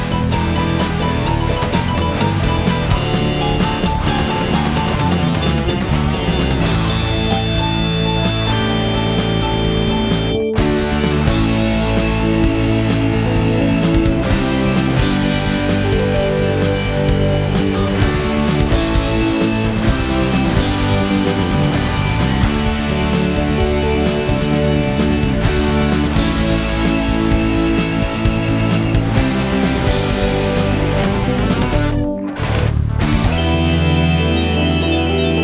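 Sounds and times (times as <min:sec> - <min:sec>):
instrumental major minor melody: 0:00.0 - 0:32.4, 0:33.1 - 0:35.4.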